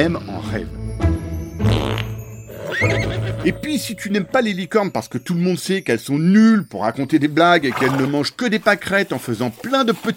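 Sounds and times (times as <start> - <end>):
speech: 0.0 - 1.2, 2.8 - 10.1
comic fart sound effect: 1.6 - 2.2.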